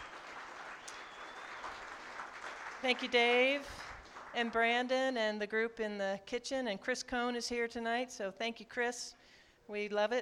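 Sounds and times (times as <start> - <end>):
audience applause: 0.0 - 4.4
speech: 2.8 - 3.8, 4.4 - 10.2.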